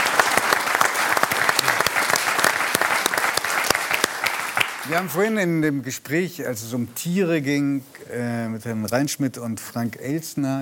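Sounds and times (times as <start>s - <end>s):
audience applause: 0.0s - 5.2s
speech: 4.9s - 10.6s.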